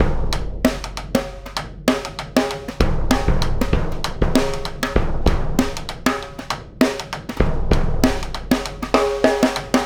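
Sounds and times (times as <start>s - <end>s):
big drum: 0.0s - 9.8s.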